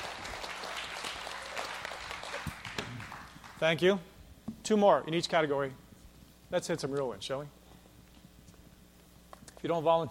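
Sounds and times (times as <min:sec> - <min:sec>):
audience clapping to vote: 0:00.0 - 0:03.8
speech: 0:03.6 - 0:05.8, 0:06.5 - 0:07.6, 0:09.6 - 0:10.1.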